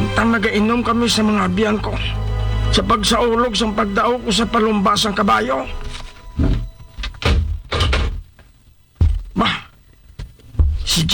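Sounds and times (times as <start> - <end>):
speech: 0.2 - 6.5
door being opened: 6.2 - 9.4.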